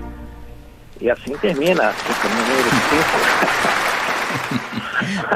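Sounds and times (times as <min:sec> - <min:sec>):
applause from a large audience at live orchestra recording: 0:00.9 - 0:05.3
speech: 0:01.0 - 0:05.3
voices cheering: 0:01.0 - 0:05.3
laughter: 0:01.2 - 0:05.3.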